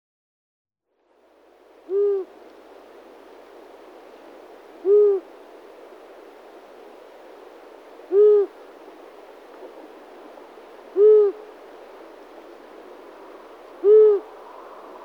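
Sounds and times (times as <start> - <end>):
Long-eared owl high squeaky calls: 1.9 - 2.3, 4.8 - 5.2, 8.1 - 8.5, 11.0 - 11.4, 13.8 - 14.2.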